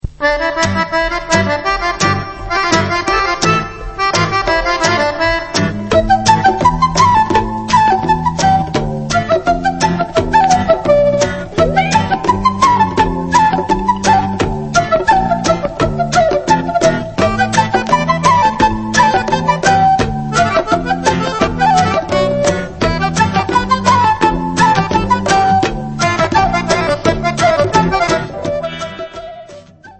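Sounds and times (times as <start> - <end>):
dabke instrumental music: 0.0 - 29.9.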